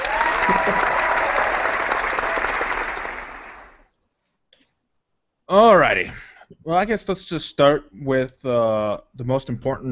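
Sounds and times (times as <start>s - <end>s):
applause: 0.0s - 3.9s
speech: 5.5s - 9.9s.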